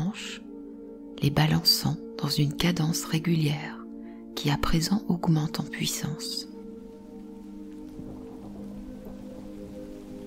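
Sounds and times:
speech: 0:01.2 - 0:03.8, 0:04.4 - 0:06.5
rain falling: 0:06.1 - 0:10.2.

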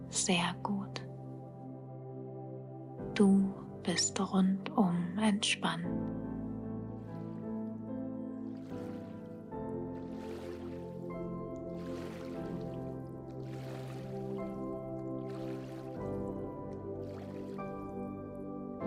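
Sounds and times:
speech: 0:00.1 - 0:00.9, 0:03.2 - 0:06.2
water lapping against small boat: 0:06.7 - 0:18.8.

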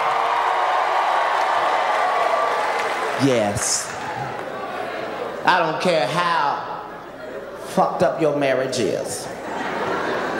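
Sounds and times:
crowd cheering and clapping: 0:00.0 - 0:05.1, 0:10.1 - 0:10.3
speech: 0:03.2 - 0:04.0, 0:05.5 - 0:06.5, 0:07.7 - 0:09.4
laughter: 0:09.3 - 0:10.3.

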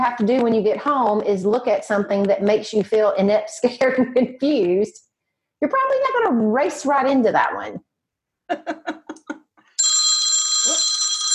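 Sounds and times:
speech: 0:00.0 - 0:05.0, 0:05.6 - 0:07.8, 0:08.5 - 0:09.0
cell phone ringtone mimicking an old-fashioned telephone bell: 0:09.8 - 0:11.3.

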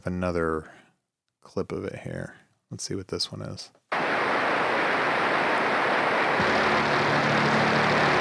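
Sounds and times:
speech: 0:00.0 - 0:00.8, 0:01.4 - 0:03.8
pink noise over a music mix: 0:03.9 - 0:08.2
music mix: 0:04.0 - 0:08.2.

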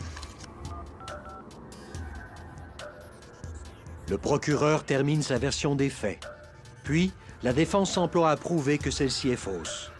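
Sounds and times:
telephone keypad tones dialing 911: 0:00.7 - 0:01.4
speech: 0:04.1 - 0:06.3, 0:06.9 - 0:09.9.

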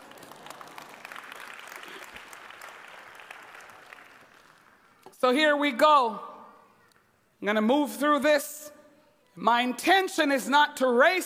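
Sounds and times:
audience applause: 0:00.0 - 0:05.0
speech: 0:05.1 - 0:06.3, 0:07.4 - 0:08.7, 0:09.4 - 0:11.2.

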